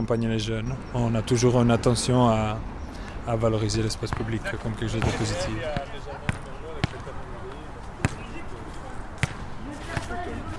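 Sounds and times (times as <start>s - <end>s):
speech: 0.0s - 6.3s
basketball bouncing on an outdoor court in front of the Merlot: 5.0s - 7.1s, 8.0s - 8.3s, 9.2s - 9.4s.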